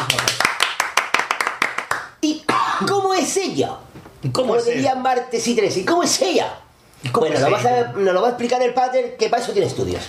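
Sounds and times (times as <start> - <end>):
brisk applause: 0.0 - 2.2
speech: 2.8 - 10.0.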